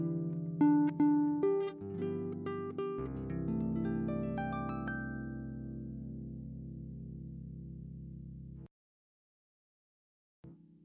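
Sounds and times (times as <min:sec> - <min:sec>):
harp: 0:00.0 - 0:08.5.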